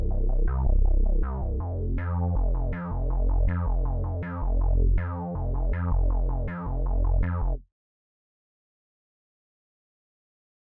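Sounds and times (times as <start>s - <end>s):
detuned bass without effects: 0.0s - 7.6s.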